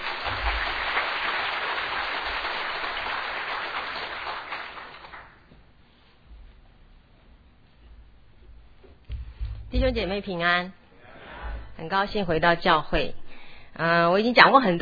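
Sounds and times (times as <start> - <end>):
church congregation applauding: 0.0 - 5.5
speech: 9.7 - 10.8, 11.8 - 13.2, 13.8 - 14.8.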